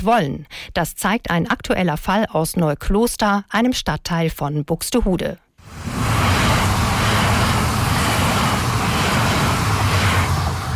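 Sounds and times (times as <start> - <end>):
speech: 0.0 - 6.1
S-Bahn commuter train passing through town: 5.6 - 10.7.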